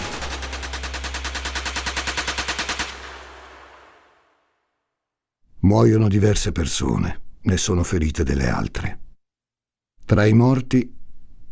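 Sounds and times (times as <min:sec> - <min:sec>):
automatic gunfire from armed men: 0:00.0 - 0:04.3
speech: 0:05.6 - 0:09.0, 0:10.1 - 0:11.0.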